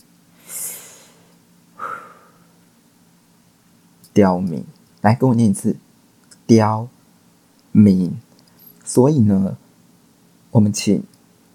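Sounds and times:
deep breaths during a group breathing exercise: 0:00.4 - 0:02.6
speech: 0:04.1 - 0:05.8, 0:06.5 - 0:07.0, 0:07.7 - 0:08.2, 0:08.9 - 0:09.6, 0:10.5 - 0:11.2.

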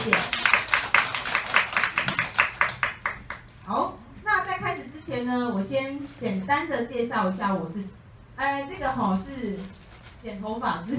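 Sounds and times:
audience applause: 0:00.0 - 0:03.4
speech: 0:05.2 - 0:10.9.

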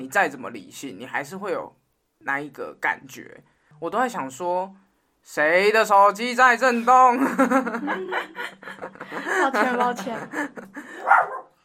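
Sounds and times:
speech: 0:00.0 - 0:11.4
laughter: 0:07.0 - 0:11.1
dog barking: 0:11.0 - 0:11.6.

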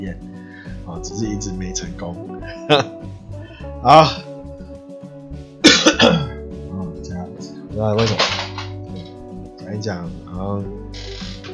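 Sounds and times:
speech: 0:00.0 - 0:00.3, 0:00.9 - 0:03.2, 0:03.8 - 0:04.3, 0:07.8 - 0:08.4, 0:09.7 - 0:11.1
coughing: 0:02.4 - 0:03.0, 0:05.6 - 0:07.2.

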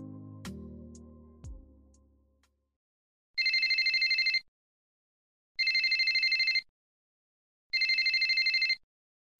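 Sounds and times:
mobile phone ringing: 0:03.4 - 0:04.5, 0:05.6 - 0:06.7, 0:07.7 - 0:08.8.

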